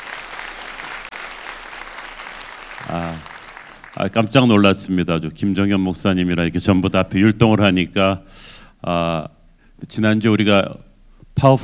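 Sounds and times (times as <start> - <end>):
large crowd applauding: 0.0 - 4.5
speech: 2.9 - 3.3, 4.0 - 11.6.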